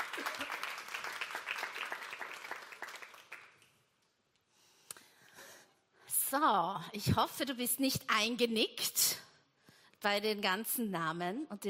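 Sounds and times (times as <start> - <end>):
applause: 0.0 - 3.9
speech: 6.3 - 9.2, 10.0 - 11.6.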